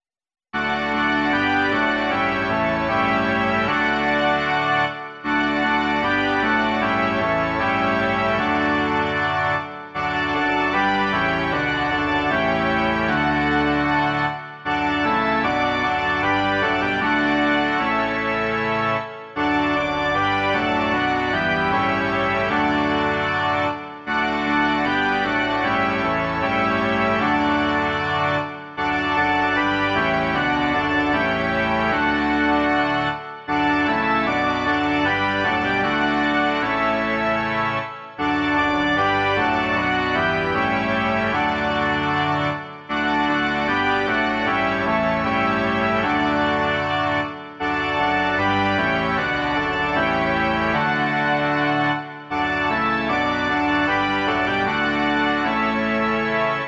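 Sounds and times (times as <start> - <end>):
organ: 0.6 - 56.6.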